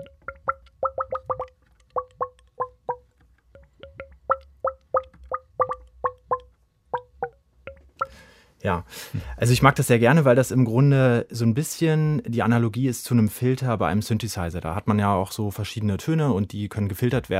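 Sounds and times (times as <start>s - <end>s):
water moving inside a turned seashell: 0.0s - 8.1s
speech: 8.6s - 17.3s.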